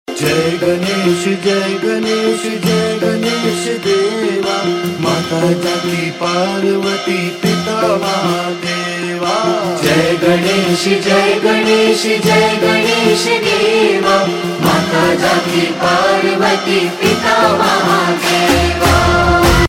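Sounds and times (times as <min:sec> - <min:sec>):
devotional song ringtone: 0:00.1 - 0:19.6.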